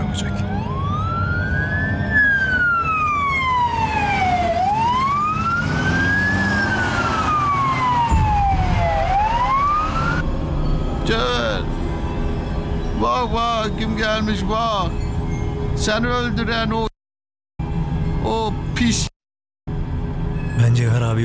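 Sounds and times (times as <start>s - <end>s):
low rumble of engine and road noise: 0.0s - 16.9s, 17.6s - 19.1s, 19.7s - 21.2s
vehicle siren wailing: 0.1s - 11.7s
speech: 13.7s - 15.0s, 15.8s - 16.9s, 18.8s - 19.1s.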